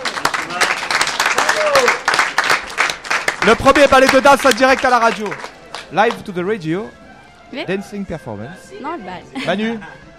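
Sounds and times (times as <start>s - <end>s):
voices calling out and cheering: 0.0s - 5.4s
audience applause: 0.0s - 6.2s
speech: 3.4s - 10.1s.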